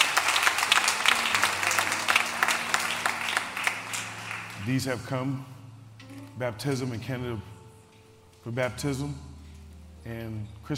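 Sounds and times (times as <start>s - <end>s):
church audience clapping in praise: 0.0s - 4.9s
speech: 4.7s - 5.6s, 6.4s - 7.5s, 8.4s - 9.3s, 10.0s - 10.7s.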